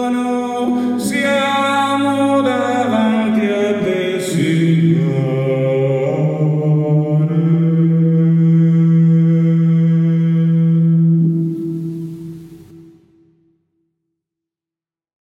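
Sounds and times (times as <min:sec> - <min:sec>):
sopranos singing: 0:00.0 - 0:12.1.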